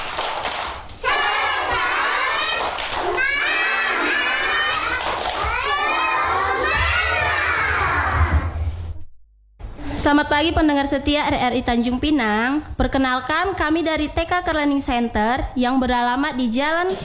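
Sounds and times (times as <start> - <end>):
children doing a rhythmic clapping chant: 0.0 - 8.2
speech: 10.0 - 17.0.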